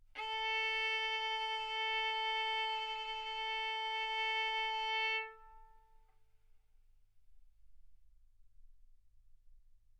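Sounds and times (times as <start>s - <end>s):
violin bowed mezzo-forte on the A string, A4 and B4: 0.2s - 6.0s.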